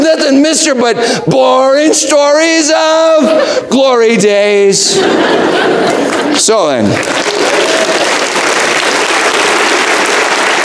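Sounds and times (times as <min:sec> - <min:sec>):
speech: 0:00.3 - 0:08.3
laughter: 0:03.0 - 0:08.4
audience clapping: 0:05.8 - 0:10.6.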